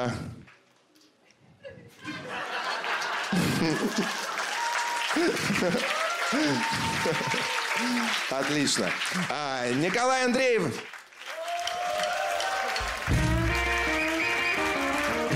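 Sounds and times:
speech: 0.0s - 0.3s, 3.3s - 4.3s, 5.2s - 11.0s
laughter: 1.6s - 9.5s
audience applause: 2.1s - 15.3s.

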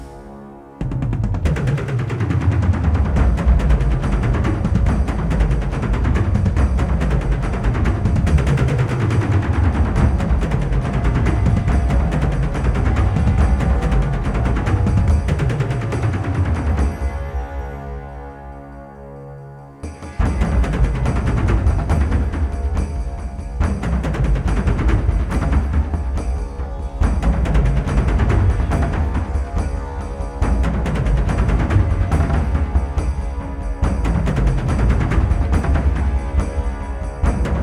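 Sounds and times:
thunder drums: 0.8s - 17.2s, 19.8s - 37.6s.

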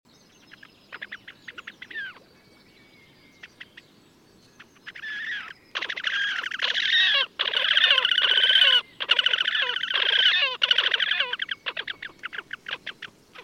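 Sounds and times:
horned grebe calling: 0.4s - 2.6s, 3.3s - 3.8s, 4.6s - 13.4s.

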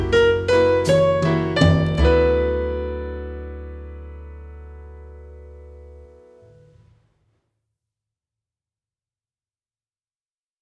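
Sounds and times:
jazz lounge music: 0.0s - 6.7s.

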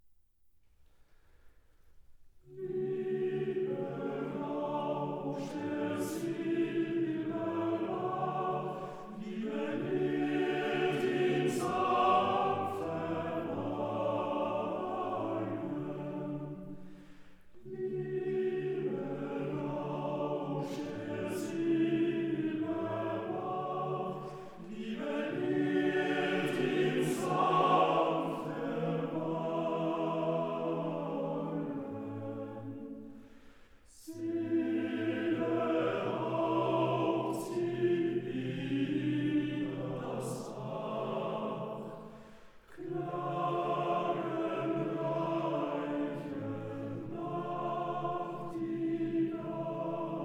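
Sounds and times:
chorus singing: 2.4s - 50.2s.

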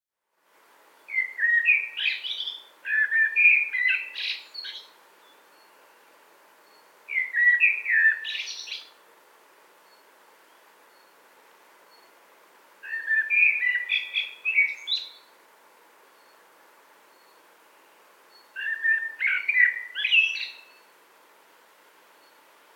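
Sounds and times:
common blackbird song: 0.9s - 9.0s, 9.8s - 11.2s, 11.8s - 12.2s, 12.8s - 15.3s, 16.1s - 16.4s, 17.1s - 20.9s.

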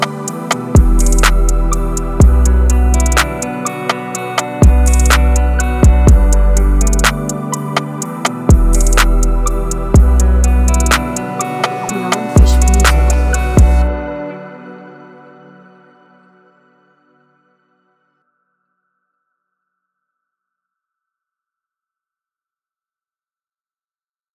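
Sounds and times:
instrumental type beat: 0.0s - 13.9s.

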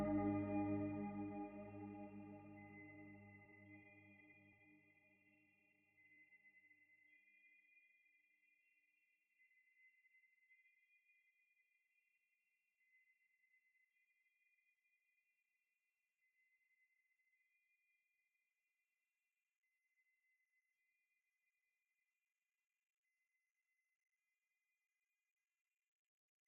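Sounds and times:
soothing spa music: 0.0s - 3.1s.

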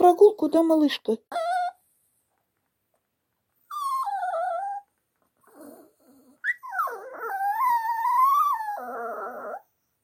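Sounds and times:
speech: 0.0s - 1.5s
dog whining to go for a walk: 1.3s - 1.9s, 3.6s - 10.0s.

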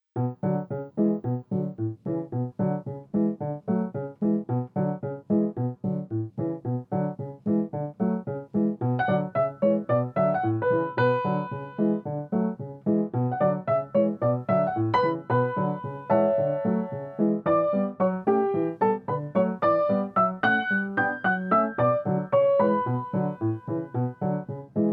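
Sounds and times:
left hand swing music: 0.2s - 24.9s.

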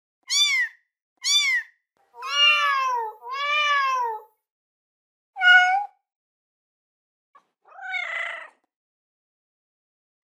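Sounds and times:
kitten meowing: 0.3s - 4.2s, 5.4s - 5.9s, 7.7s - 8.6s.

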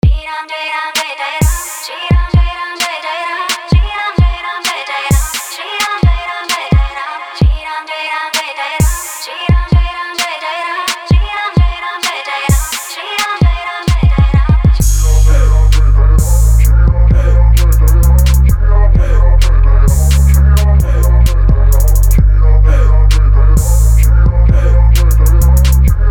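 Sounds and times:
trap music: 0.0s - 26.0s.

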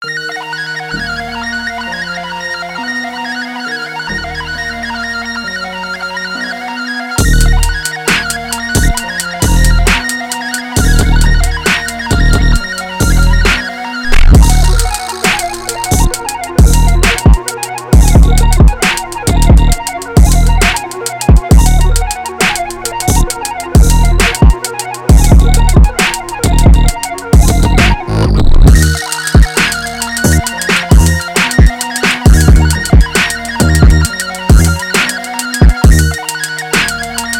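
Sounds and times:
Glock hip hop beat at 134 BPM: 0.0s - 37.3s.

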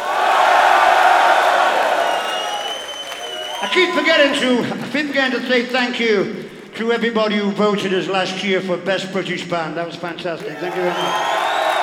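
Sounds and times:
audience cheering: 0.0s - 5.3s, 10.4s - 11.8s
speech: 3.7s - 11.4s.

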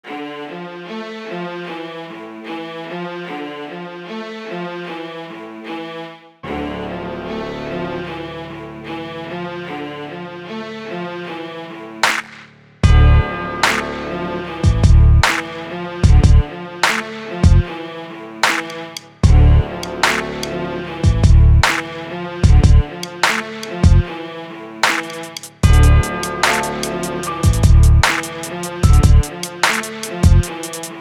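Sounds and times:
music beat: 12.0s - 17.8s, 18.4s - 24.2s, 24.8s - 30.9s.

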